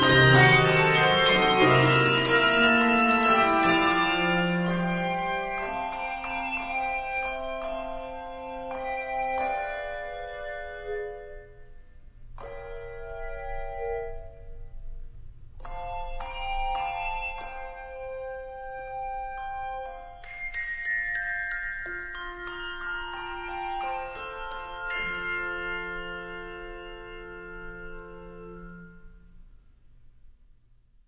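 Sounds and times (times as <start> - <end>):
handbell choir: 0.0 - 10.6, 15.6 - 18.5, 19.2 - 29.1.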